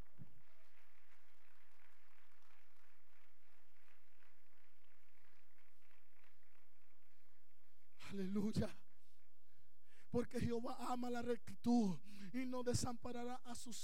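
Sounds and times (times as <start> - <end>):
audience applauding: 0.0 - 7.2
speech: 8.1 - 8.9, 10.1 - 13.8.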